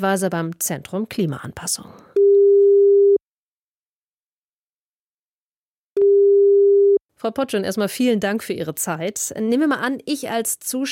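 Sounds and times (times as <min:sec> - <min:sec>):
speech: 0:00.0 - 0:02.2, 0:07.2 - 0:10.9
telephone ringing tone: 0:02.2 - 0:03.2, 0:06.0 - 0:07.0.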